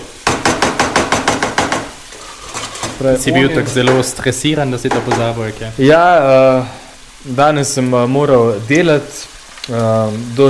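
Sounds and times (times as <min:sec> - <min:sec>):
frozen minced meat frying in a pan: 0:00.0 - 0:10.4
scraping knocks in a pan: 0:00.2 - 0:03.1, 0:03.7 - 0:05.6
speech: 0:03.0 - 0:10.4.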